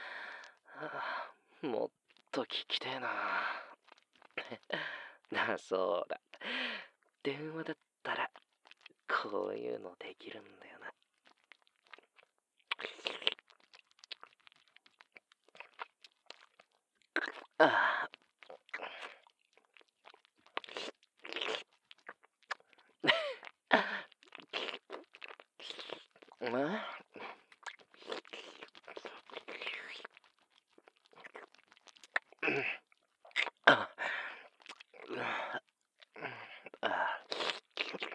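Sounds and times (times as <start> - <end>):
speech: 0.8 - 3.6, 4.5 - 6.6, 7.2 - 7.8, 9.2 - 10.6
ear-licking ASMR mouth sounds: 3.7 - 4.6, 8.2 - 9.1, 10.9 - 35.2, 35.9 - 38.1.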